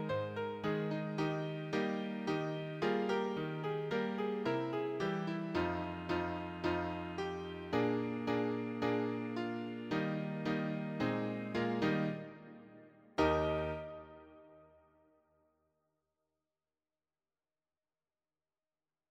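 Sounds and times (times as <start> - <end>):
piano accompaniment for a church hymn: 0.0 - 14.5.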